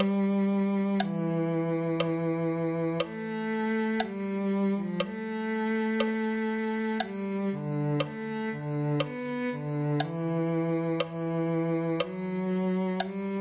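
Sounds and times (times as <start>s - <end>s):
cello: 0.0s - 13.3s.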